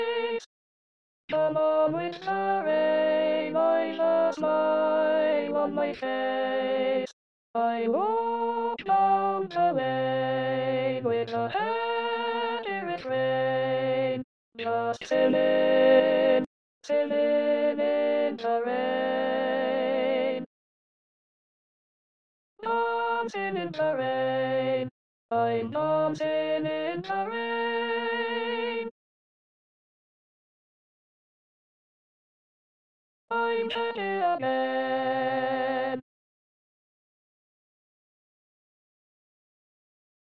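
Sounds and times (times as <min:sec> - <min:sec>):
alto voice singing in E flat: 0:01.3 - 0:20.5, 0:22.6 - 0:28.9, 0:33.3 - 0:36.0.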